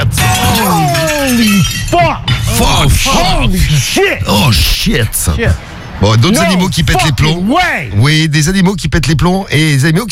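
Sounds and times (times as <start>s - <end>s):
glass vivarium pane shattering: 0.0s - 3.7s
speech: 2.9s - 10.1s.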